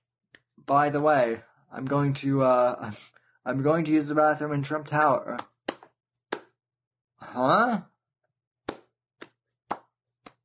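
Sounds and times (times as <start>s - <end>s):
speech: 0.6s - 5.5s, 7.3s - 7.9s
slow hand claps: 8.7s - 10.4s.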